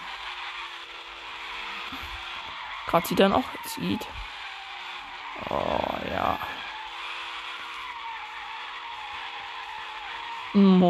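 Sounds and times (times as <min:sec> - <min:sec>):
video game car drifting tyre screech: 0:00.0 - 0:10.8
video game car engine drone: 0:00.0 - 0:10.8
speech: 0:01.9 - 0:02.2, 0:02.9 - 0:04.3, 0:05.4 - 0:06.6.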